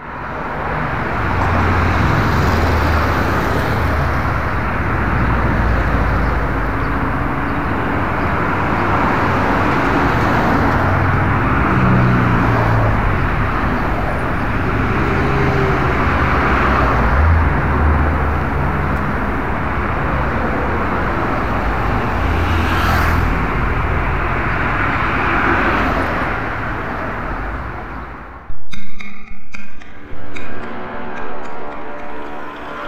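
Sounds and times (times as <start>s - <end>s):
road traffic on Avenida Río Churubusco, Distrito Federal: 0.0s - 28.5s, 29.5s - 32.8s.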